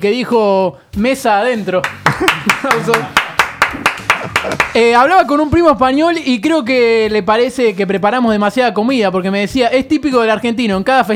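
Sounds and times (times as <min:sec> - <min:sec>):
speech: 0:00.0 - 0:11.1
applause: 0:01.8 - 0:04.8
laughter: 0:02.0 - 0:04.8.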